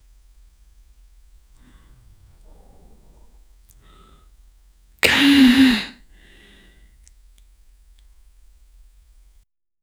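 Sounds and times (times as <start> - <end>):
person moaning: 5.0 - 5.9
kissing: 5.0 - 6.0.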